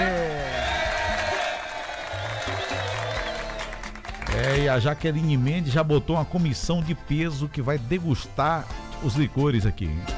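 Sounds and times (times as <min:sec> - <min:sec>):
crowd applauding and cheering with whoops: 0:00.0 - 0:05.3
laughter: 0:00.0 - 0:10.1
speech: 0:04.6 - 0:10.1.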